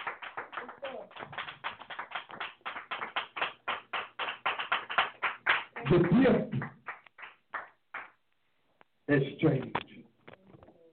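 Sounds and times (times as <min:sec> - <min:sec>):
congregation clapping hands in praise: 0:00.0 - 0:08.2
speech: 0:05.8 - 0:06.8, 0:09.2 - 0:09.8.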